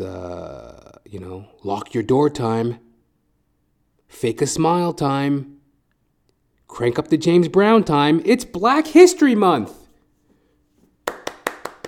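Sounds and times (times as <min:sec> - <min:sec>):
speech: 0:01.1 - 0:02.8, 0:04.1 - 0:05.6, 0:06.7 - 0:09.8
hand claps: 0:10.9 - 0:11.8.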